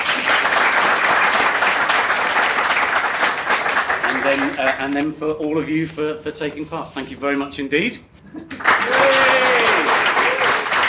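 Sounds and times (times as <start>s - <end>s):
crowd applause: 0.0s - 4.6s, 8.6s - 10.8s
speech: 4.3s - 9.2s.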